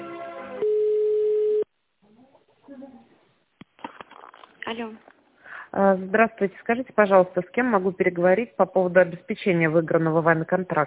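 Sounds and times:
telephone tone during call transfer to a manager: 0.6 - 1.7
speech: 4.7 - 5.1, 5.7 - 10.8.

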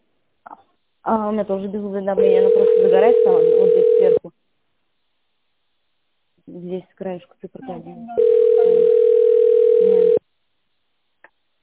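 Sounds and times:
speech: 1.0 - 4.5, 6.5 - 9.2
telephone ringback tone: 2.2 - 4.2, 8.2 - 10.2.

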